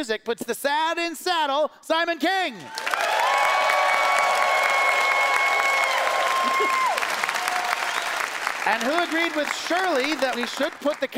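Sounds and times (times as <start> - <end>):
speech: 0.0 - 3.2, 6.6 - 6.8, 8.7 - 11.1
audience applause: 2.7 - 11.1.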